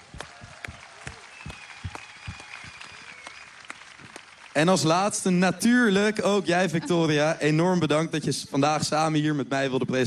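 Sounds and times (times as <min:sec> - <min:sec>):
audience applause: 0:00.0 - 0:05.7
speech: 0:04.6 - 0:10.0.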